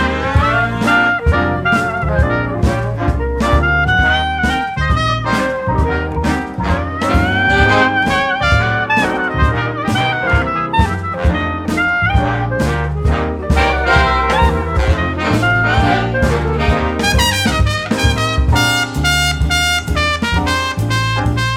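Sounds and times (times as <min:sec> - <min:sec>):
karaoke backing track: 0:00.1 - 0:21.5.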